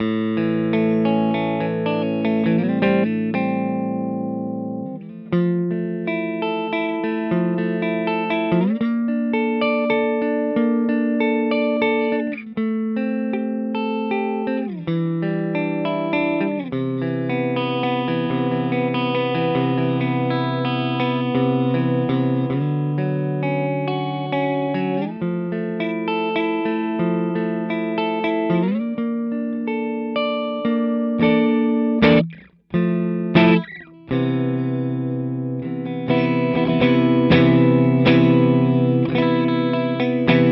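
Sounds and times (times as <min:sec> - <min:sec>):
Maybach Lester Junior Double Cut electric guitar: 0:00.0 - 0:40.5.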